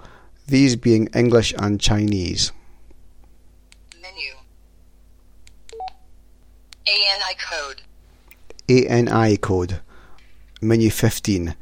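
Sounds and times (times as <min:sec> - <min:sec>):
speech: 0:00.5 - 0:02.6, 0:08.7 - 0:09.9, 0:10.6 - 0:11.5
Baofeng UV5R radio handset keypress beeps: 0:05.7 - 0:06.0.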